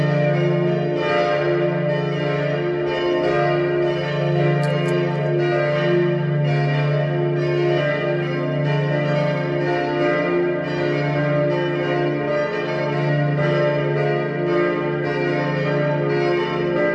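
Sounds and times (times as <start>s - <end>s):
multi-voiced peal of bells tuned d1 f1 a1 c2 d2: 0.0s - 16.9s.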